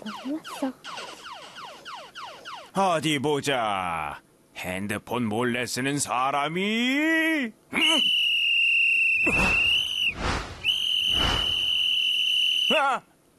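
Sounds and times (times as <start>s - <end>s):
speech: 0.1s - 1.1s, 2.8s - 8.0s
whistle being blown in shrill blasts: 7.8s - 12.9s.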